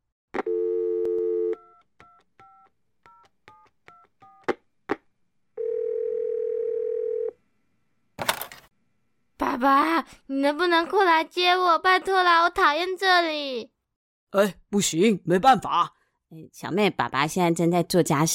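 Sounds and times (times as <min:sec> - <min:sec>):
telephone dial tone: 0:00.4 - 0:03.2, 0:05.6 - 0:07.3
speech: 0:09.6 - 0:13.7, 0:14.3 - 0:18.3.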